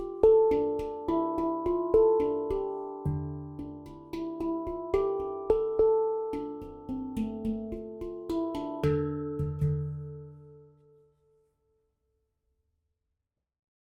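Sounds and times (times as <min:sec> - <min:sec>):
handpan mantra playing: 0:00.0 - 0:11.0.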